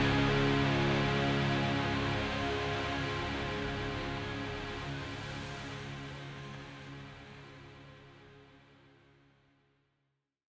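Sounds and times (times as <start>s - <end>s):
instrumental music: 0.0s - 6.3s.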